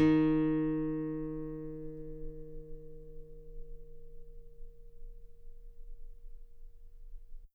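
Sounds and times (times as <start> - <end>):
very long guitar D sharp 5 note played forte: 0.0 - 4.6.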